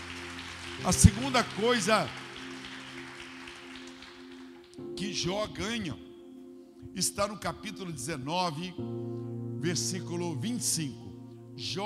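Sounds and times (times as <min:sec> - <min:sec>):
audience applauding: 0:00.0 - 0:04.9
speech: 0:00.8 - 0:02.2, 0:05.2 - 0:06.1, 0:06.9 - 0:11.0, 0:11.6 - 0:11.8.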